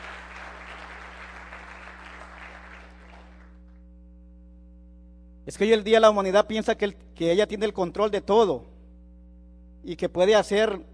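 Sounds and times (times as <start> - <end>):
audience applause: 0.0 - 3.6
steady low electrical hum with faint tonal whine: 0.0 - 10.9
speech: 5.5 - 8.7, 9.8 - 10.9.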